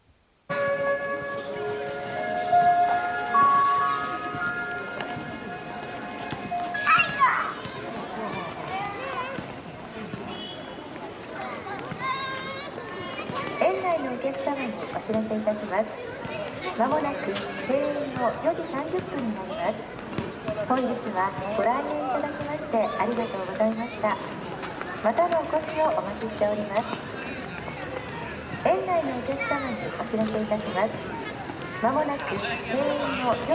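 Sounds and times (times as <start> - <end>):
park closing-time melody of bell-like tones: 0.5 - 7.2
children shouting and chattering: 0.5 - 33.5
speech: 15.8 - 24.4, 25.0 - 27.1, 28.9 - 31.2, 31.8 - 33.5.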